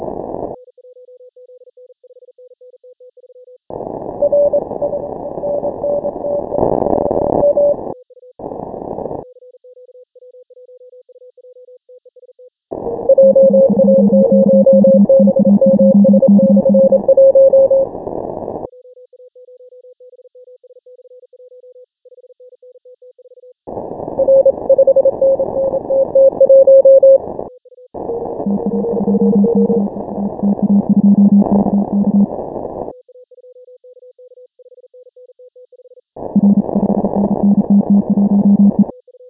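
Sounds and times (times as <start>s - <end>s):
morse code beeps: 4.2s - 6.6s, 12.9s - 17.8s, 24.2s - 27.2s, 28.1s - 32.3s, 36.4s - 38.9s.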